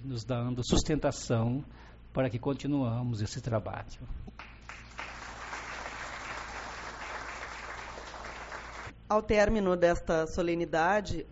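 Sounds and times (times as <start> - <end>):
speech: 0.0 - 4.4, 9.1 - 11.3
crowd applause at a ceremony: 4.7 - 8.9.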